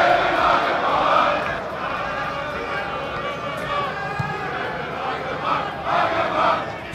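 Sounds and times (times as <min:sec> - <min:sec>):
football stadium crowd at Wuppertaler SV's Stadion am Zoo singing: 0:00.0 - 0:06.9.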